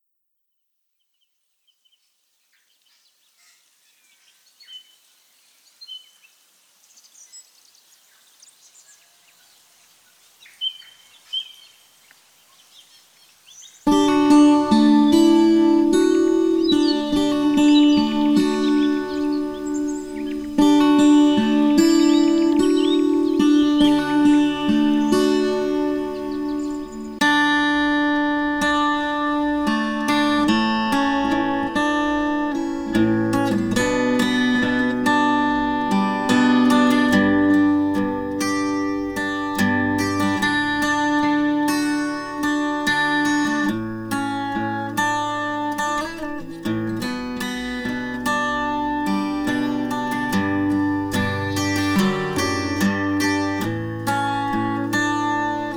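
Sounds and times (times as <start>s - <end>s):
ambient guitars: 13.8s - 55.7s.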